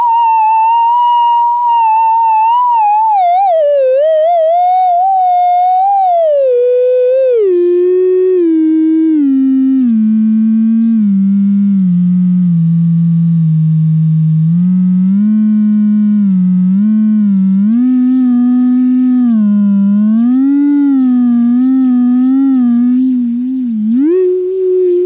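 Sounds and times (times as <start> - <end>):
theremin: 0.0 - 25.0.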